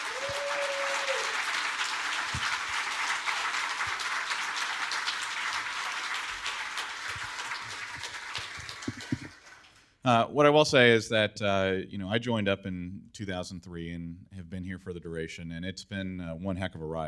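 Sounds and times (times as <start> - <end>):
audience applause: 0.0 - 9.9
speech: 10.0 - 17.0.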